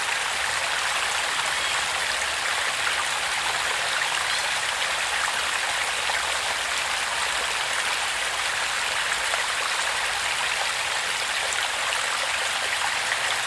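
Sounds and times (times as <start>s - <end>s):
water trickling over stones into a small creek: 0.0s - 13.4s.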